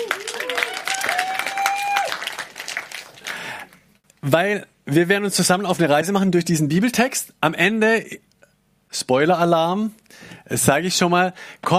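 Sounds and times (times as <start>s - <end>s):
audience applause: 0.0s - 3.8s
speech: 4.2s - 8.2s, 8.9s - 11.7s.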